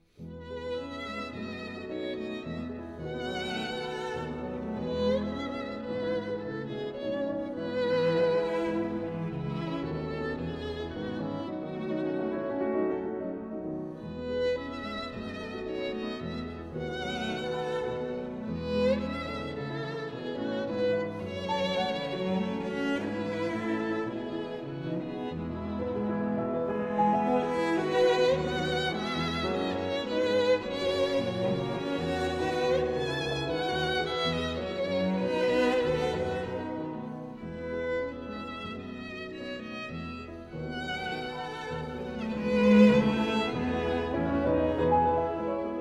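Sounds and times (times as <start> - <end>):
piano trio in A minor playing a variation: 0.0 - 45.8.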